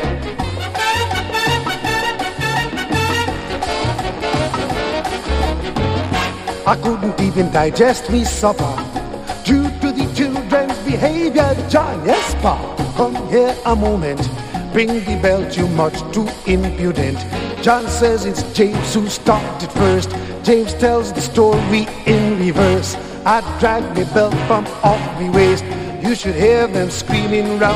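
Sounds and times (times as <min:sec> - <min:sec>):
calypso music played on brass: 0:00.0 - 0:27.7.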